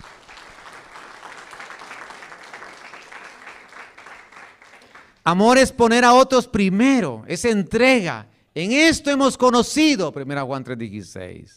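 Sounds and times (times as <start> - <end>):
audience applauding: 0.0 - 5.2
speech: 5.3 - 11.5.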